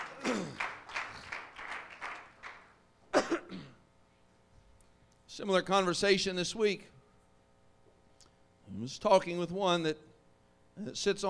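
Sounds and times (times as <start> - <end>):
audience hand clapping: 0.0 - 2.8
speech: 5.4 - 7.0, 8.8 - 10.1, 10.8 - 11.2.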